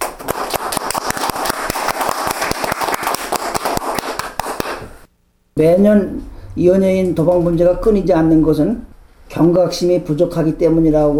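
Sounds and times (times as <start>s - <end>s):
audience clapping: 0.0s - 5.0s
speech: 5.6s - 11.1s.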